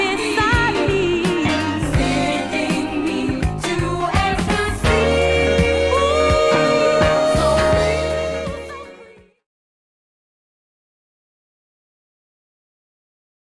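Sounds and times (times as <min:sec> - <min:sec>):
funk music: 0:00.0 - 0:09.2.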